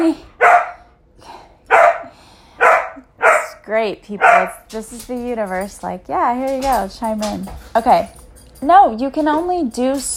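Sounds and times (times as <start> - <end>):
speech: 0.1 - 0.3, 3.7 - 10.1
dog barking: 0.4 - 0.9, 1.7 - 3.6, 4.2 - 4.6.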